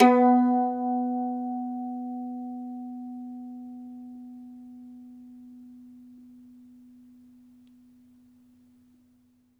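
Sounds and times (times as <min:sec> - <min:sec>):
mandolin plucked strings: 0:00.0 - 0:06.9.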